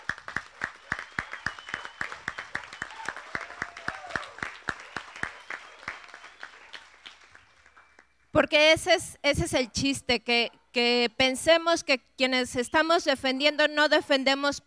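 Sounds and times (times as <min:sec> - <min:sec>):
audience clapping at a community meeting in Jalcomulco: 0:00.0 - 0:08.2
whistle-like cheers: 0:00.6 - 0:08.2
speech: 0:08.4 - 0:14.6.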